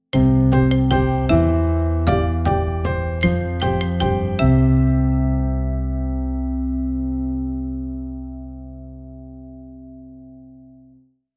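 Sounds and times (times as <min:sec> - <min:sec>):
happy ident jingle: 0:00.1 - 0:07.2.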